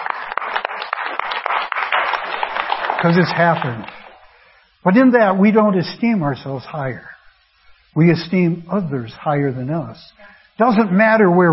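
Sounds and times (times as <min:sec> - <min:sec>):
audience applause: 0:00.0 - 0:04.3
speech: 0:03.0 - 0:04.0, 0:04.8 - 0:07.1, 0:07.9 - 0:11.5.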